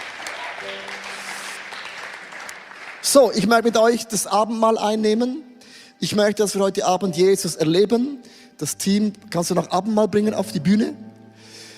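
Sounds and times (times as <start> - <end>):
audience applause: 0.0 - 3.2
speech: 3.0 - 11.1.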